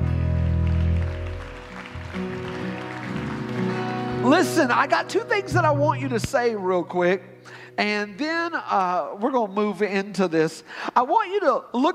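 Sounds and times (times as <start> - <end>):
audience clapping hands: 0.0 - 5.1
speech: 4.3 - 11.9.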